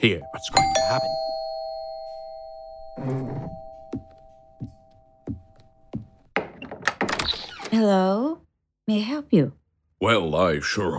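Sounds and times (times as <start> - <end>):
speech: 0.0 - 1.2, 3.0 - 4.8, 7.8 - 10.9
ringing chime tone: 0.0 - 6.0
knocking on a condo door: 3.9 - 7.1.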